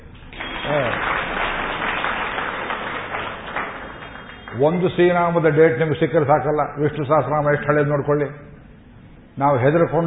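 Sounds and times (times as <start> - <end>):
audience clapping at a lecture: 0.2 - 5.4
speech: 4.6 - 8.5, 9.4 - 10.0.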